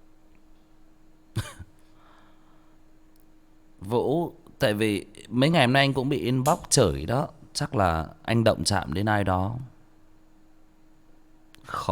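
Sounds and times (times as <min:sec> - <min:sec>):
quiet hum: 0:00.0 - 0:11.8
person with a cough coughing while reading aloud: 0:01.4 - 0:01.8
speech: 0:03.8 - 0:09.7.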